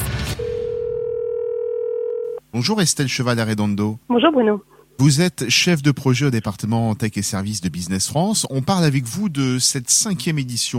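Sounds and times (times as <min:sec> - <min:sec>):
telephone dial tone: 0:00.4 - 0:02.4
speech: 0:02.5 - 0:10.7.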